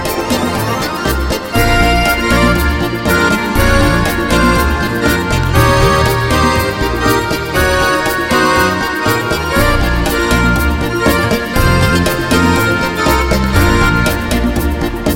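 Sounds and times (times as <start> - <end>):
song: 0.0 - 15.1.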